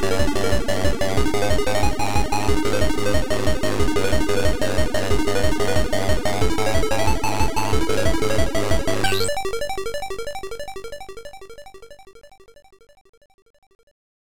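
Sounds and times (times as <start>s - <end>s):
techno music: 0.0s - 10.5s.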